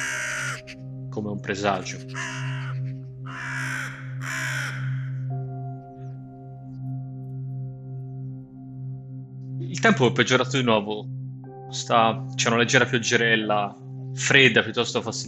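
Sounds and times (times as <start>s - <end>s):
crows cawing: 0.0s - 1.0s, 1.8s - 6.0s
speech: 1.2s - 2.4s, 9.8s - 15.2s.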